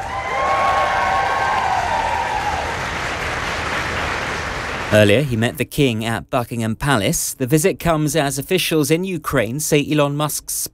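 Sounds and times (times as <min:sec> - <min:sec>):
Foreign Office staff clapping at Downing Street: 0:00.0 - 0:05.4
speech: 0:04.9 - 0:10.7.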